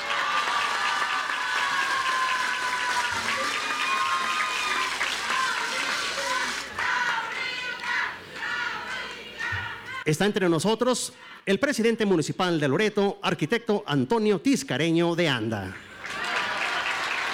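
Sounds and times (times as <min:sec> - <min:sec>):
audience applause: 0:00.0 - 0:07.9, 0:16.0 - 0:17.3
speech: 0:10.1 - 0:15.8.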